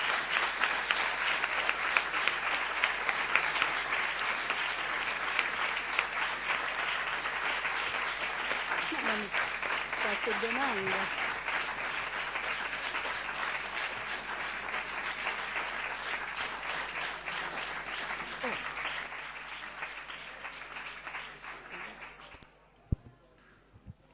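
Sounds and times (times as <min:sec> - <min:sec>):
audience applause: 0:00.0 - 0:22.5
speech: 0:10.2 - 0:11.2.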